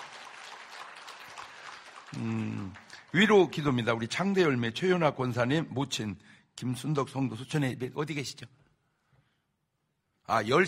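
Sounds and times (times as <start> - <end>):
audience applause: 0.0 - 4.0
speech: 2.1 - 8.6, 10.3 - 10.6.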